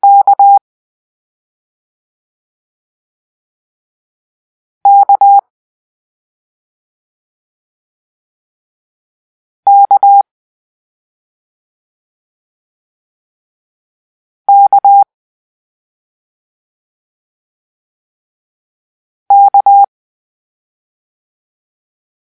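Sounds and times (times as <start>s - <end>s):
morse code letter K beeps: 0.0s - 0.6s, 4.9s - 5.4s, 9.7s - 10.2s, 14.5s - 15.1s, 19.3s - 19.9s.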